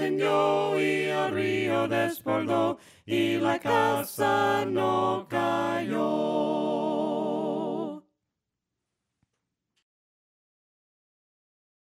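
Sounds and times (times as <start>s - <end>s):
voices singing a hymn a cappella: 0.0s - 8.0s.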